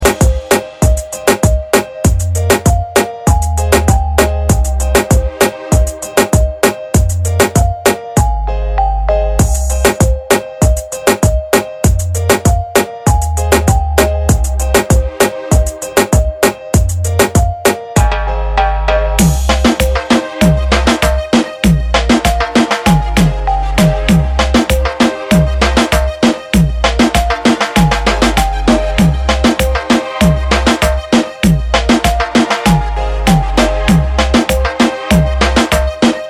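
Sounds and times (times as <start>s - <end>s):
reggaeton instrumental: 0.0s - 36.2s.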